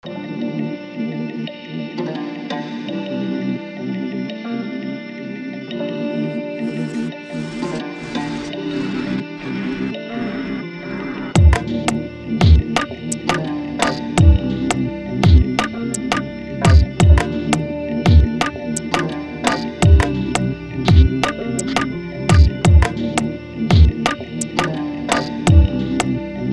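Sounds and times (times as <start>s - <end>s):
Afro lofi music: 11.4s - 26.5s.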